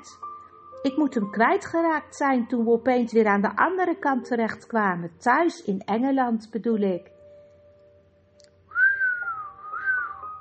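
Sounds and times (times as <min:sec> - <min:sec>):
speech: 0:00.0 - 0:00.2, 0:00.8 - 0:07.2
whistling through teeth: 0:08.7 - 0:10.3.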